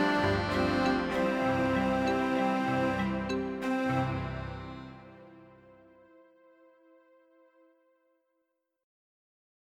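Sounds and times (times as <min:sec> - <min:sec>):
tune: 0:00.0 - 0:07.4.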